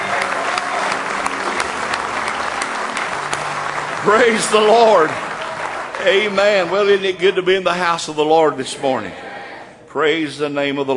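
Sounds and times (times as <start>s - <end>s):
audience hand clapping: 0.0s - 7.4s
speech: 4.0s - 5.2s, 6.0s - 9.3s, 9.9s - 10.9s.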